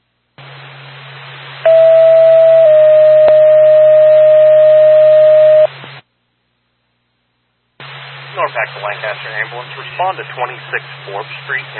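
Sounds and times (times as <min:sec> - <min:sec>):
radio dispatch alert tones: 0:01.7 - 0:05.7
speech: 0:08.8 - 0:11.7.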